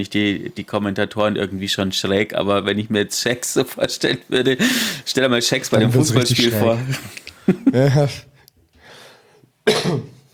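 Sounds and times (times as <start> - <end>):
speech: 0.0 - 8.3
breathy inhale: 4.6 - 5.1, 8.8 - 9.5
person coughing into microphone: 9.6 - 10.3.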